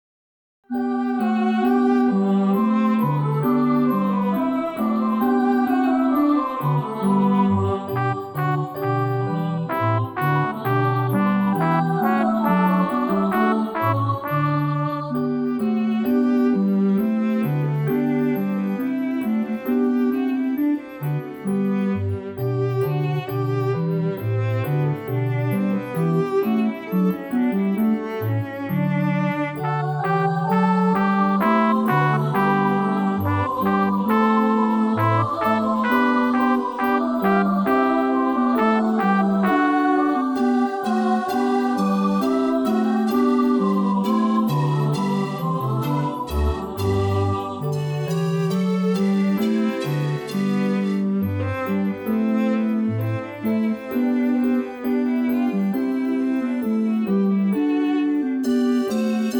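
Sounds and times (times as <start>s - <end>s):
gavotte on a Yamaha: 0.7s - 59.3s.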